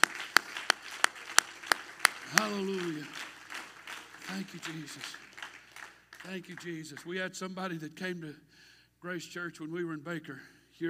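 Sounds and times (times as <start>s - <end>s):
audience clapping in rhythm: 0.0s - 7.3s
noise: 0.0s - 10.8s
speech: 2.3s - 3.2s, 4.3s - 5.3s, 6.2s - 10.8s.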